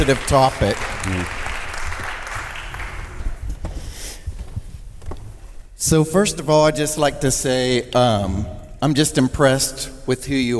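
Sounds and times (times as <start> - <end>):
speech: 0.0 - 1.4, 5.8 - 10.5
audience applause: 0.0 - 3.6.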